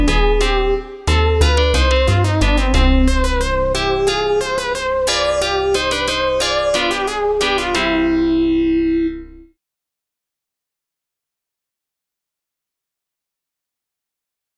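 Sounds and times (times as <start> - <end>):
fugue in C minor: 0.0 - 9.5.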